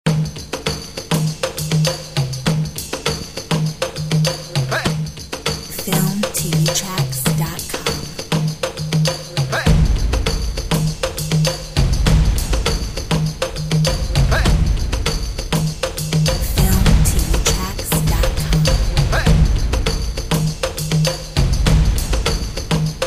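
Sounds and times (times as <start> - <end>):
urban drums: 0.1 - 23.0.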